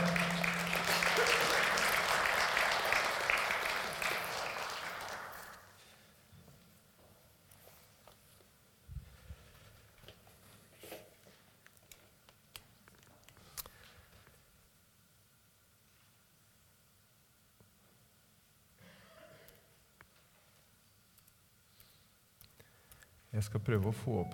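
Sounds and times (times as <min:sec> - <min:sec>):
audience applause: 0:00.0 - 0:05.7
speech: 0:23.4 - 0:24.3.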